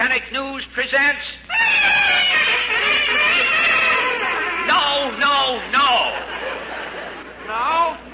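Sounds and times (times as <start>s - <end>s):
speech: 0.0s - 2.4s
newsreel fanfare played on two trumpets: 1.5s - 5.1s
laughter: 1.7s - 8.1s.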